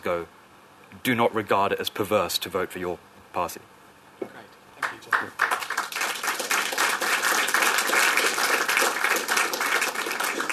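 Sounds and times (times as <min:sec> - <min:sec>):
speech: 0:00.0 - 0:03.8
audience applause: 0:04.8 - 0:10.5.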